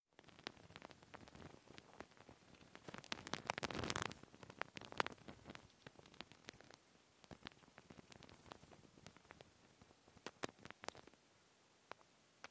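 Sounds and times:
cable: 0:00.2 - 0:11.2.

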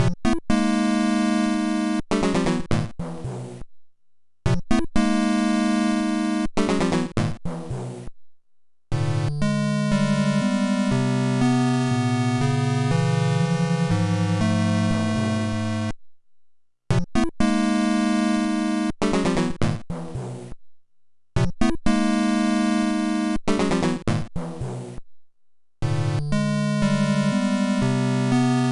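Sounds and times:
fast castle game music: 0:00.0 - 0:03.6, 0:04.5 - 0:07.4, 0:08.9 - 0:15.9, 0:16.9 - 0:19.8, 0:21.6 - 0:24.3, 0:25.8 - 0:28.7.

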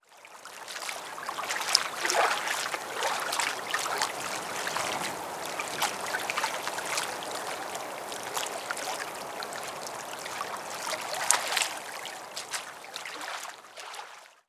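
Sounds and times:
quiet water at docks: 0:00.0 - 0:14.4.

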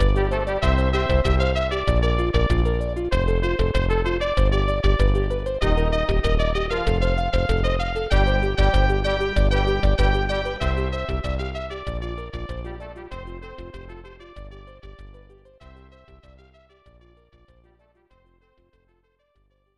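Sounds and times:
victory fanfare: 0:00.0 - 0:05.0, 0:05.6 - 0:14.2.

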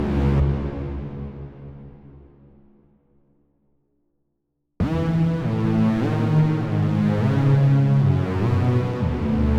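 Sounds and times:
bass layer: 0:00.0 - 0:02.4, 0:04.8 - 0:09.5.

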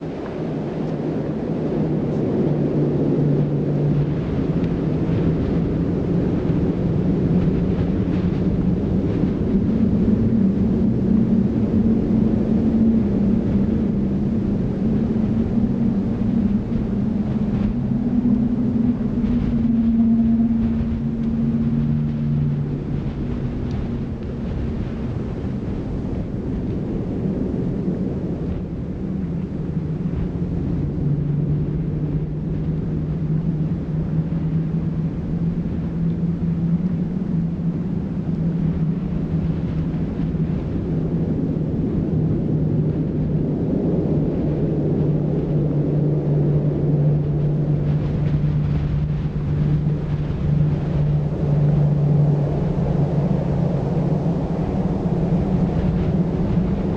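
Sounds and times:
wind: 0:00.0 - 0:56.9.

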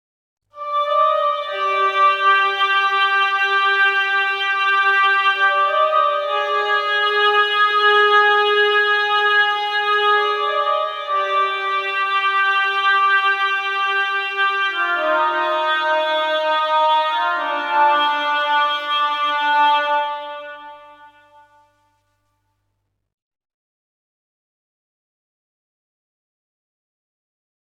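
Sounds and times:
oboe playing variations: 0:00.6 - 0:22.1.

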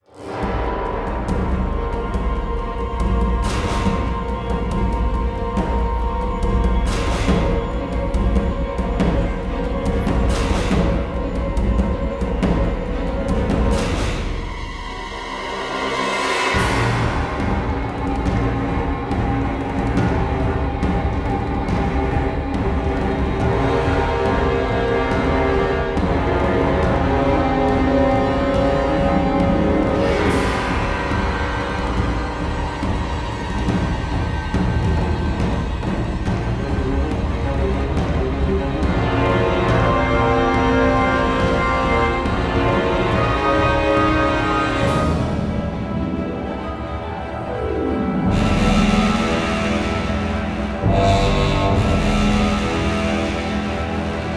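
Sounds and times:
high-intensity action music: 0:00.0 - 0:54.3.

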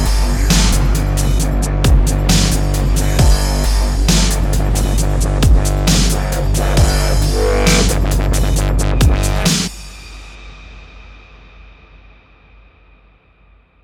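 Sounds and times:
dubstep music: 0:00.0 - 0:09.7.

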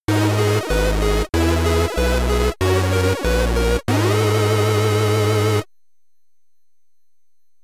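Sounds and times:
SID stereo stage clear chiptune music: 0:00.1 - 0:05.6.

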